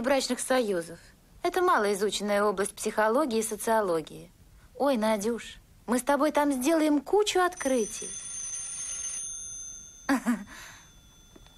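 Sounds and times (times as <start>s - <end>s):
speech: 0.0s - 8.2s, 10.1s - 10.7s
telephone bell ringing: 7.5s - 11.5s.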